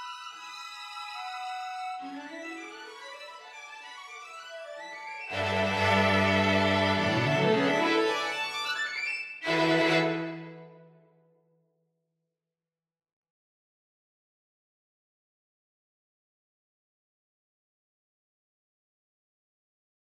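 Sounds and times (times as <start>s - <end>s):
string quartet: 0.0s - 10.8s.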